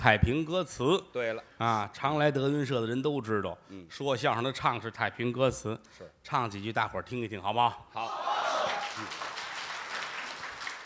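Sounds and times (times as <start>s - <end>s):
speech: 0.0s - 9.3s
audience applause at a crosstalk comedy show: 8.3s - 10.8s.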